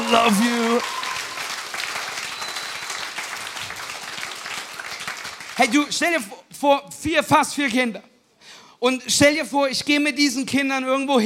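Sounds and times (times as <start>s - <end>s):
audience applause: 0.0s - 6.0s
speech: 0.1s - 1.0s, 5.6s - 8.1s, 8.8s - 11.2s.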